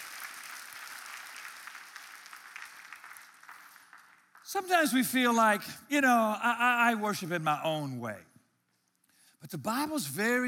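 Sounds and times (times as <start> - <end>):
audience clapping hands: 0.0 - 5.4
speech: 4.5 - 8.3, 9.4 - 10.4.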